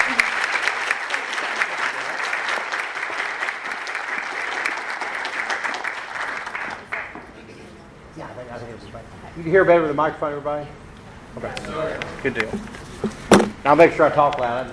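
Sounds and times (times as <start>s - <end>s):
audience applause for a participant after an on-stage question session: 0.0s - 7.3s
speech: 9.4s - 10.8s, 11.4s - 12.8s, 13.6s - 14.7s.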